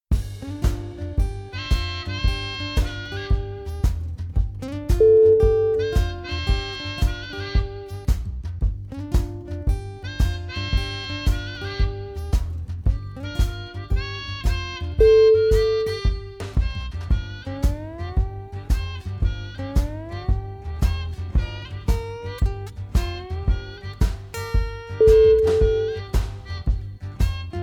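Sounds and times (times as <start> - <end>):
blues music: 0.1 - 27.6.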